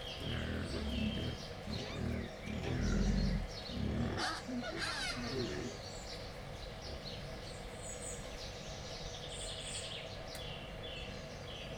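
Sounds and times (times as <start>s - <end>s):
wild boar grunting: 0.0s - 6.1s
small birds chirping and twittering: 0.0s - 11.7s.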